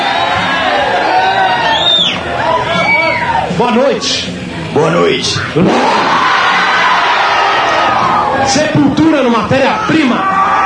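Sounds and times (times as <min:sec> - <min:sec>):
large standing crowd roaring: 0:00.0 - 0:03.6, 0:05.4 - 0:08.9, 0:09.6 - 0:10.6
whistle or whoop: 0:01.5 - 0:03.4
speech: 0:03.6 - 0:06.2, 0:08.5 - 0:10.4.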